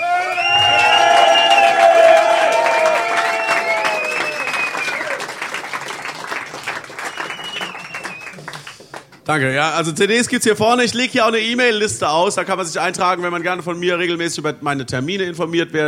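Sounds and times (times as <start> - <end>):
crowd audience applause and cheering: 0.0 - 9.1
speech: 9.3 - 15.8.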